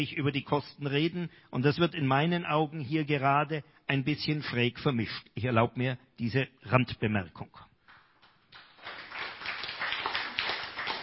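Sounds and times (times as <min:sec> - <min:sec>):
speech: 0:00.0 - 0:07.7
applause: 0:07.9 - 0:11.0.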